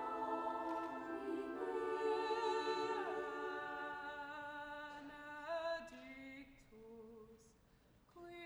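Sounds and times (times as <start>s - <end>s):
choral mass music: 0.0s - 6.4s.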